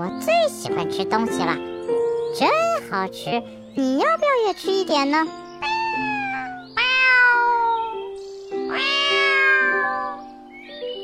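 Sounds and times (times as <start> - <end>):
speech: 0.0 - 1.7, 2.3 - 6.2
cat meowing: 5.6 - 10.4.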